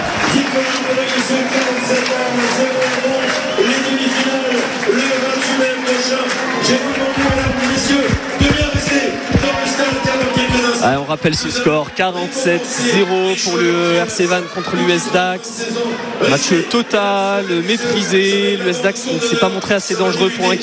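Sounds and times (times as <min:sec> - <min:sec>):
rugby stadium crowd cheering its players: 0:00.0 - 0:20.6
low thumps: 0:07.1 - 0:10.6
speech: 0:11.1 - 0:20.6.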